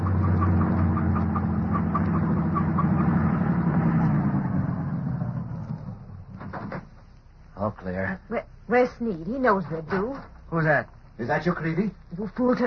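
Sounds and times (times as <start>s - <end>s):
truck passing by: 0.0s - 6.8s
speech: 7.7s - 12.6s.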